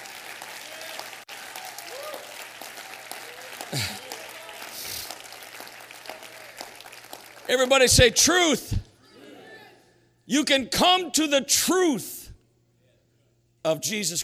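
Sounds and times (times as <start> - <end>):
audience clapping hands: 0.0 - 8.8
speech: 3.7 - 4.0, 7.5 - 8.8, 10.3 - 12.2, 13.7 - 14.2.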